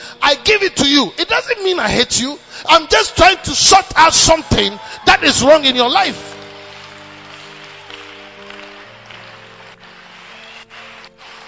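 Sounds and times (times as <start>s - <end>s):
speech: 0.3s - 6.3s
audience clapping: 4.3s - 11.4s.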